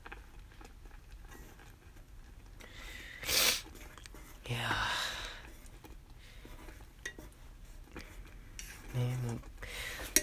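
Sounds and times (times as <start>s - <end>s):
mixing eggs in a frying pan: 0.0s - 10.2s.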